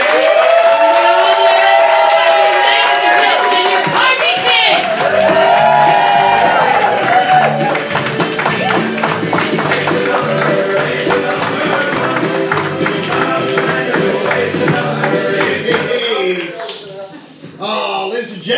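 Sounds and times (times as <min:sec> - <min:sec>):
crowd cheering and whooping: 0:00.0 - 0:09.3
crowd clapping: 0:00.0 - 0:16.8.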